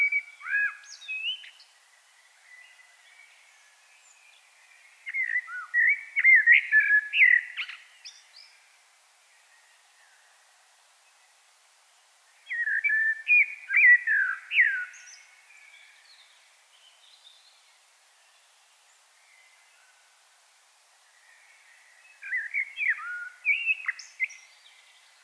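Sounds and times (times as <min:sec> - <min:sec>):
common blackbird singing: 0:00.0 - 0:01.7, 0:02.4 - 0:08.6, 0:12.4 - 0:17.6, 0:21.2 - 0:25.2.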